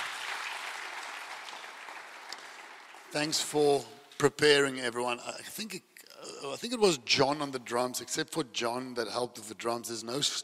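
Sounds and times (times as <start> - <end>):
church congregation applauding its volunteer band: 0.0 - 3.8
speech: 3.1 - 10.4.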